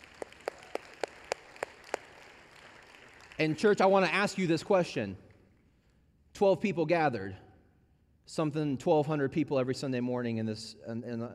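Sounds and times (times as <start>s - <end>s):
audience clapping in a steady rhythm: 0.0s - 4.4s
speech: 3.4s - 5.2s, 6.4s - 7.4s, 8.3s - 11.3s.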